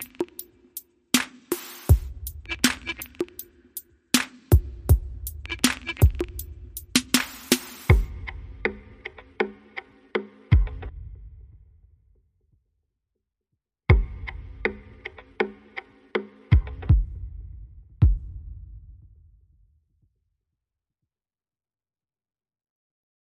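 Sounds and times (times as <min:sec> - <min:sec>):
drums: 0:00.0 - 0:11.6, 0:13.9 - 0:19.3.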